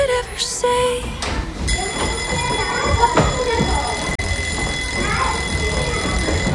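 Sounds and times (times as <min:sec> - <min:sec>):
people chattering and moving about: 0:00.0 - 0:06.5
electric school bell ringing: 0:01.6 - 0:06.5.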